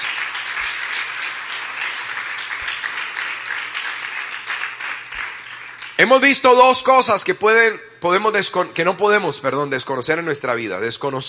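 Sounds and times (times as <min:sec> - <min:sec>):
audience applauding: 0:00.0 - 0:06.4
speech: 0:06.0 - 0:11.2.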